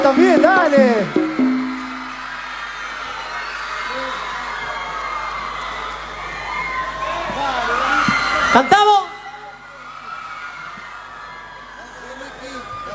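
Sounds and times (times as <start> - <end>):
audience applause: 0.0 - 8.6.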